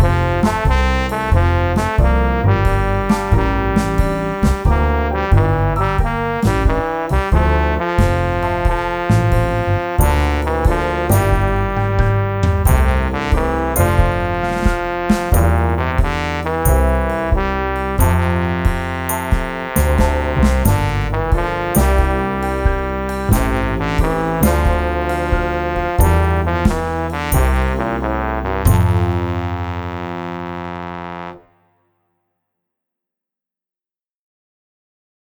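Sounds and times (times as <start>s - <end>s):
trombone melody: 0.0s - 31.7s.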